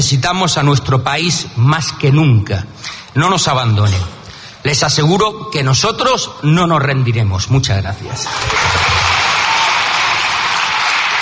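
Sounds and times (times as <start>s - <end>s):
speech: 0.0s - 9.0s
applause: 8.2s - 11.1s.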